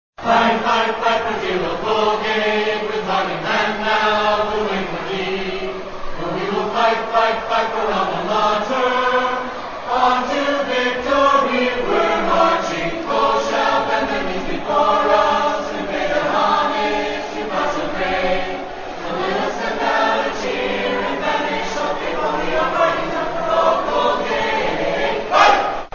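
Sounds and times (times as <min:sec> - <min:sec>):
vocals: 0:00.2 - 0:25.9.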